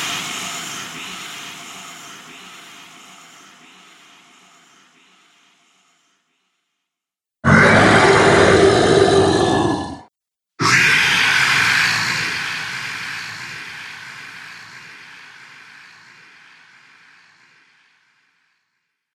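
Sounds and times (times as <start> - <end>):
dragon monster sounds: 7.4 - 14.7.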